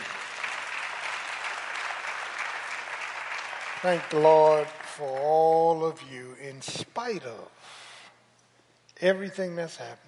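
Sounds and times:
crowd clapping: 0.0s - 6.0s
speech: 3.8s - 7.8s, 9.0s - 10.0s.

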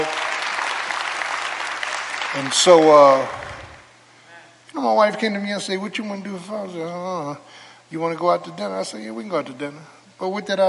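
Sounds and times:
audience applause: 0.0s - 3.9s
speech: 2.3s - 3.4s, 4.8s - 10.6s.

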